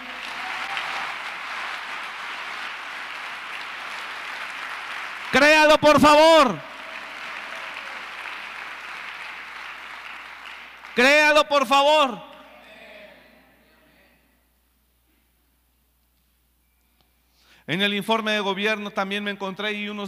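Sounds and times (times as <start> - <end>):
audience applause: 0.0 - 11.0
speech: 5.3 - 6.7, 11.0 - 12.3, 17.7 - 20.0.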